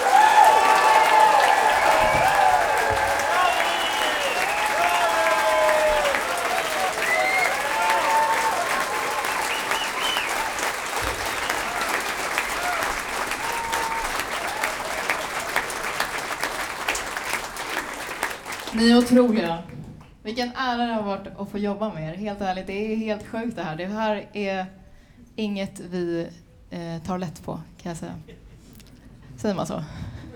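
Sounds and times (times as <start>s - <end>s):
applause for string orchestra: 0.0s - 20.2s
speech: 19.1s - 19.6s, 20.2s - 24.8s, 25.4s - 28.4s, 29.4s - 30.0s.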